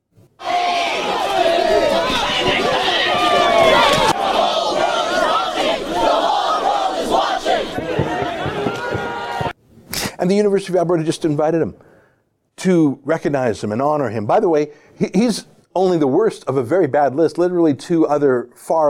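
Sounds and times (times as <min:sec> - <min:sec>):
protest crowd shouting: 0:00.4 - 0:09.6
speech: 0:10.2 - 0:11.9, 0:12.6 - 0:18.8.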